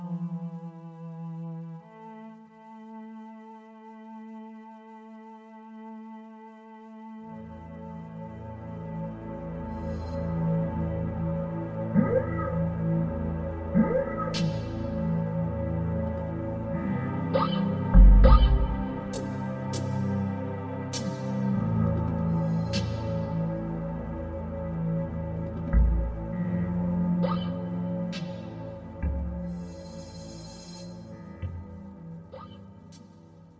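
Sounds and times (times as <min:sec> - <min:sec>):
dark forest ambience: 0:07.3 - 0:33.5.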